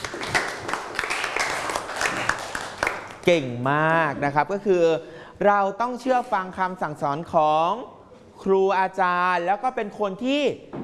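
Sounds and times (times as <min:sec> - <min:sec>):
classroom applause for classmates: 0:00.0 - 0:03.3
speech: 0:03.2 - 0:10.8.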